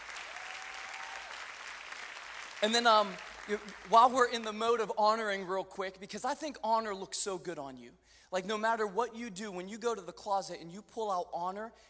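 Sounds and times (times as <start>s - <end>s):
audience clapping: 0.0s - 4.3s
speech: 2.6s - 11.8s.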